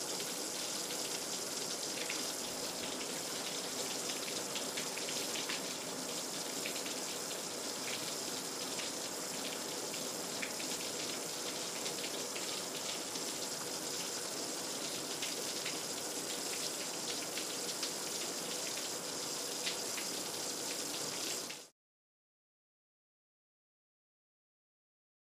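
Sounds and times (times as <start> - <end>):
shower running close up: 0.0 - 21.7.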